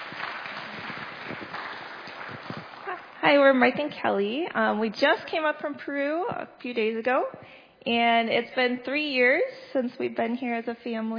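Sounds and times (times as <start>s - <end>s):
crowd clapping: 0.0s - 3.2s
speech: 3.2s - 11.1s.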